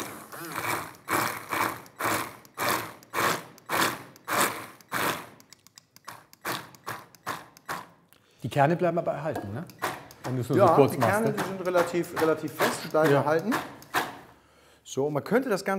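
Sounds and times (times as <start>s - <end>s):
hand blender briefly blending fruit: 0.0s - 5.5s, 6.1s - 7.9s, 9.7s - 14.2s
speech: 8.4s - 13.8s, 14.9s - 15.7s.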